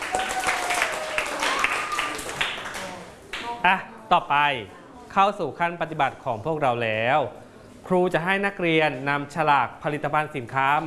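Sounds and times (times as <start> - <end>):
students applauding themselves: 0.0 - 3.1
speech: 3.6 - 10.8.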